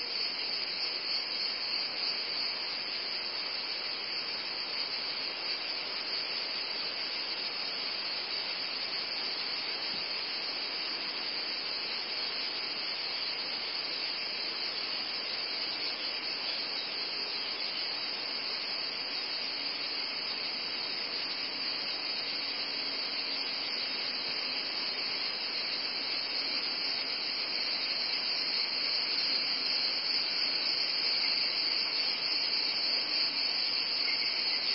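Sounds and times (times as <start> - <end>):
cicadas droning in a high buzz: 0.0 - 34.7.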